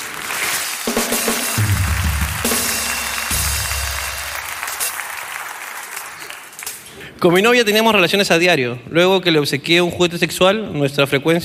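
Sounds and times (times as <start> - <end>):
crowd applause: 0.0 - 6.9
low tonal rumbling: 1.6 - 2.5
speech: 7.2 - 11.4.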